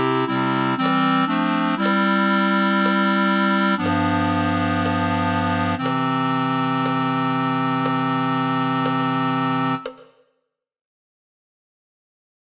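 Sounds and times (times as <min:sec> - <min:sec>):
dramatic chord music track: 0:00.0 - 0:09.9.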